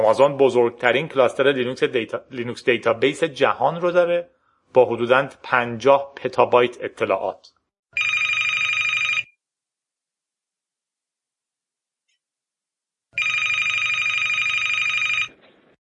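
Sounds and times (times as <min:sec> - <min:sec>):
speech: 0:00.0 - 0:08.1
telephone ringing: 0:08.0 - 0:09.4, 0:13.2 - 0:15.4.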